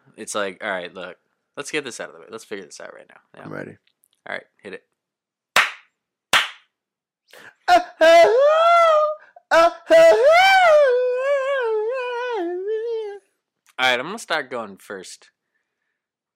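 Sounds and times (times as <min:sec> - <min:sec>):
speech: 0:00.2 - 0:04.9, 0:07.3 - 0:08.6, 0:09.5 - 0:11.1, 0:13.8 - 0:15.4
open-hand slaps: 0:05.6 - 0:06.7
melodic sung vocal with sustained wavering notes: 0:07.4 - 0:13.3.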